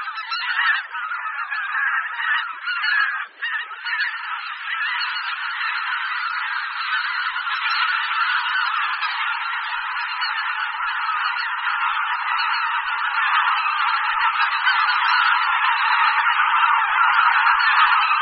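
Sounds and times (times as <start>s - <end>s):
bean geese honking: 0.0s - 18.2s.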